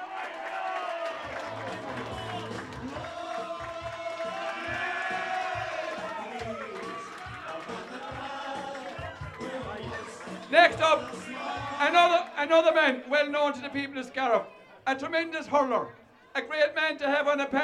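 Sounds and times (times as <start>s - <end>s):
crowd applauding: 0.0s - 12.4s
speech: 10.5s - 11.2s, 11.8s - 17.6s.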